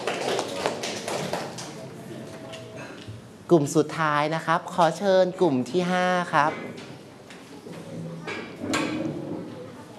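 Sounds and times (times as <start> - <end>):
audience clapping: 0.0 - 1.8
speech: 3.5 - 6.8.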